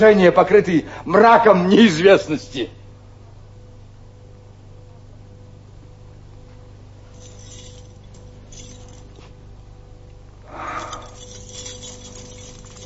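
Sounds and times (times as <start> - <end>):
speech: 0.0 - 2.8
bunch of keys thrown down: 7.1 - 9.4, 10.6 - 12.8.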